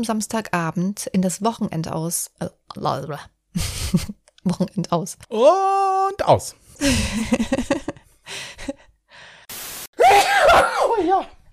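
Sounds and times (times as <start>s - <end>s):
speech: 0.0s - 8.5s
people laughing: 6.8s - 8.0s
sneeze from hay fever: 10.0s - 11.0s.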